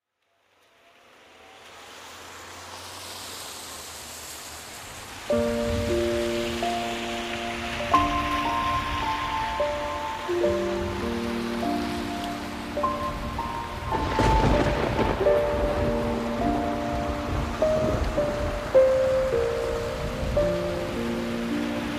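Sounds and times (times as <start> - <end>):
rain: 0.0 - 21.9
piano: 5.0 - 21.9.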